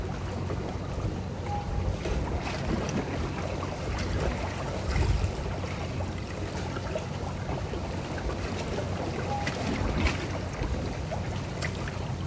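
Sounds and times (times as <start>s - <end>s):
Tamsui River water slapping against the embankment at night: 0.0s - 12.2s
faint short tones: 1.4s - 2.0s.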